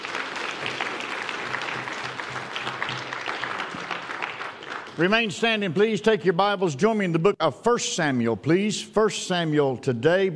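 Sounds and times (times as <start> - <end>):
audience clapping hands: 0.0 - 6.1
speech: 5.0 - 10.3.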